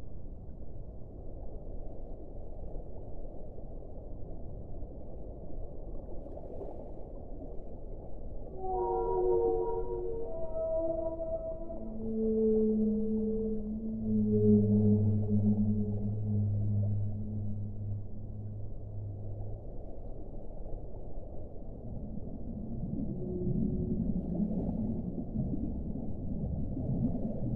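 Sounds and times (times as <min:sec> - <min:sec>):
steady low rumble of water noise: 0:00.0 - 0:27.5
whales singing: 0:08.5 - 0:19.9, 0:22.2 - 0:26.2.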